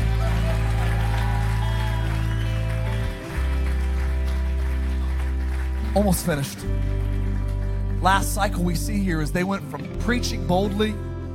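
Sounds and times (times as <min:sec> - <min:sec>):
audience shouting: 0:00.0 - 0:03.0
audience clapping: 0:00.0 - 0:09.4
speech: 0:06.0 - 0:07.1, 0:08.0 - 0:11.0.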